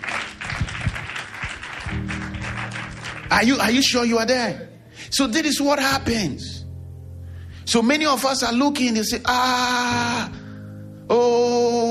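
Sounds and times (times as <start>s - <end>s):
audience clapping hands: 0.0s - 4.0s
speech: 3.3s - 6.6s, 7.7s - 10.4s.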